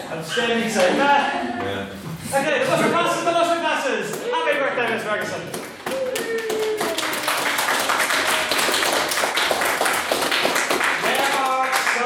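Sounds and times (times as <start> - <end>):
speech: 0.3 - 3.3, 4.4 - 5.6
audience clapping: 5.5 - 12.0.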